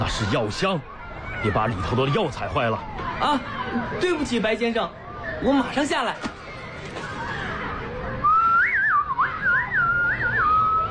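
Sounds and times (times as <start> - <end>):
speech: 0.0 - 6.3
person whistling birdlike tune imitating an oriole: 8.2 - 10.8.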